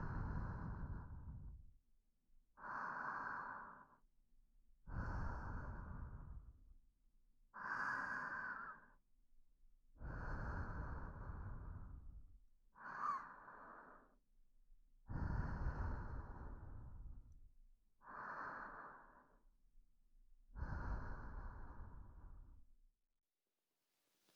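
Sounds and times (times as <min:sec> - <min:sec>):
slow deep breathing of a meditation guide: 0:00.0 - 0:01.8, 0:02.5 - 0:04.1, 0:04.8 - 0:06.8, 0:07.5 - 0:09.0, 0:09.9 - 0:14.3, 0:15.0 - 0:19.6, 0:20.4 - 0:22.7.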